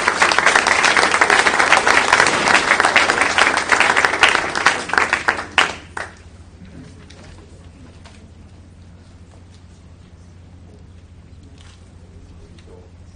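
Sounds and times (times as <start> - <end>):
crowd applauding: 0.0 - 6.3.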